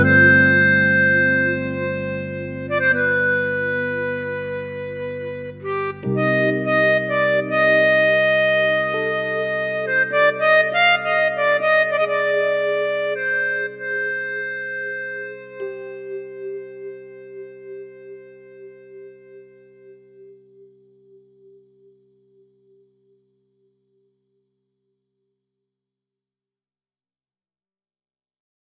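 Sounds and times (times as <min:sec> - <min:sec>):
harmonica: 0:00.0 - 0:20.7.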